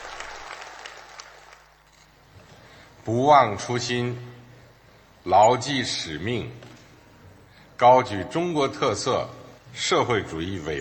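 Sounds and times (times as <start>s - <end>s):
warm applause in a meeting room: 0.0s - 1.9s
speech: 3.1s - 4.4s, 5.2s - 6.7s, 7.8s - 10.8s.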